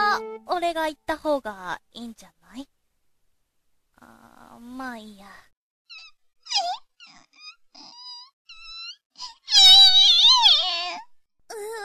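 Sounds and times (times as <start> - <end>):
speech: 0.6 - 2.7, 4.0 - 5.5, 10.9 - 11.8
lost child crying: 7.9 - 11.8.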